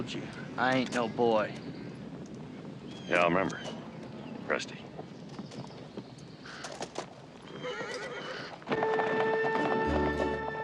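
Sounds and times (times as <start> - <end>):
speech: 0.0 - 1.8, 3.1 - 3.8, 4.5 - 4.8
horse hooves clip-clopping pulling a wagon down a busy town main street: 0.0 - 10.6
horse whinnying: 7.4 - 9.7.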